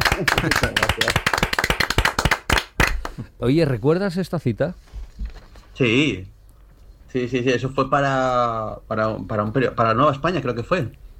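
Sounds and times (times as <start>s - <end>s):
audience applause for a guest on a talk show: 0.0s - 3.1s
speech: 0.2s - 1.4s, 3.4s - 5.0s, 5.8s - 6.4s, 7.1s - 11.0s.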